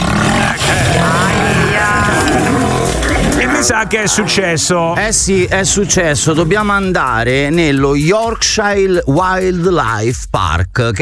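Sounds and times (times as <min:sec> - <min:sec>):
tiger roaring: 0:00.0 - 0:04.3
speech: 0:03.6 - 0:10.9.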